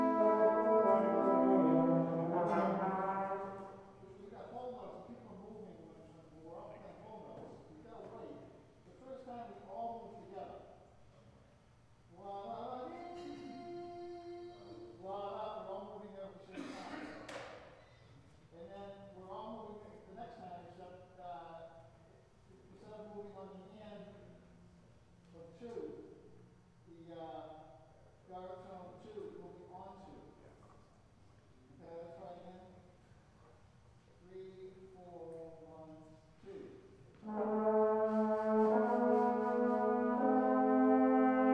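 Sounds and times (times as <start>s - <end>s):
brass instruments: 0.0s - 4.2s, 37.2s - 41.5s.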